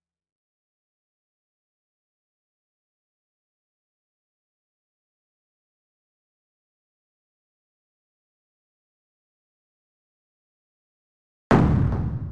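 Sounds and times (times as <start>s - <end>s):
clean explosions: 11.5s - 12.3s.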